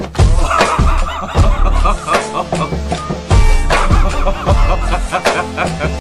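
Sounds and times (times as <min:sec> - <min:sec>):
person laughing in a toilet: 0:00.3 - 0:05.9.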